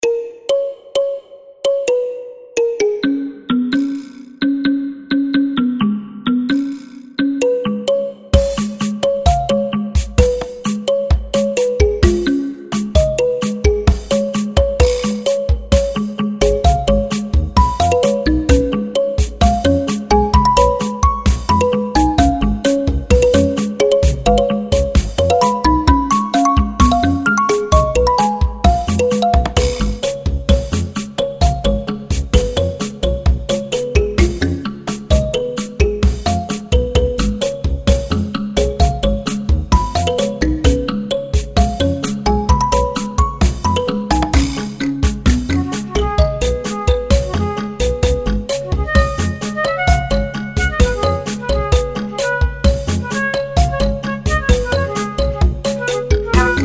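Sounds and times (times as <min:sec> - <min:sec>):
balafon soul music: 0:00.0 - 0:56.6.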